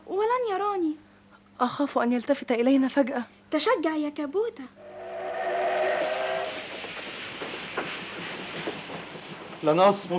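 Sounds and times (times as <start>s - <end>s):
speech: 1.6s - 4.8s, 9.6s - 10.1s
steam whistle on a passenger train: 4.8s - 6.7s
rumble and clatter of the moving train: 5.0s - 10.1s
scattered knocks: 6.5s - 9.8s.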